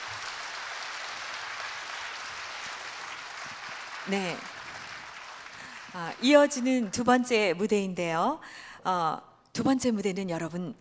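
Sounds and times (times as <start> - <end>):
audience applause: 0.0 - 6.6
speech: 4.1 - 4.5, 5.9 - 10.7.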